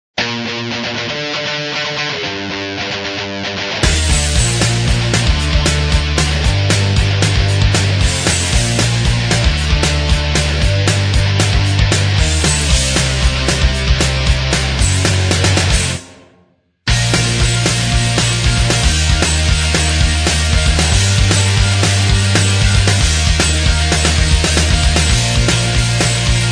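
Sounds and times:
instrumental TV theme music: 1.1 - 26.5.

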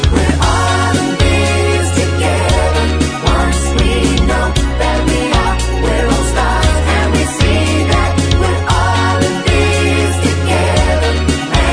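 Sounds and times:
backing vocals: 0.1 - 11.7.

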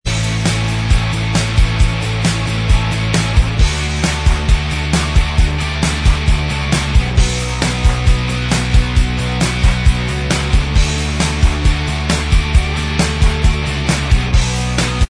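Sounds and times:
instrumental music: 0.1 - 15.0.

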